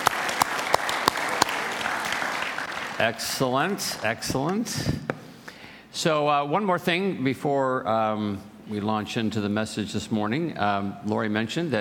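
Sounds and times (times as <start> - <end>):
audience applause: 0.0 - 4.2
speech: 3.0 - 5.0, 6.0 - 11.7.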